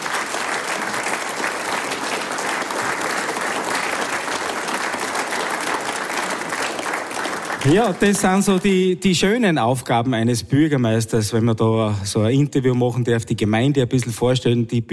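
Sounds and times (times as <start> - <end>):
audience applause: 0.0 - 8.8
speech: 7.6 - 14.9.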